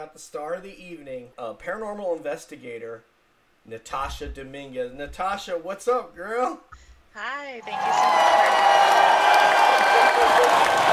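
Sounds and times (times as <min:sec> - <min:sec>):
speech: 0:00.0 - 0:10.9
talk-show audience clapping for a paranormal investigator: 0:07.6 - 0:10.9.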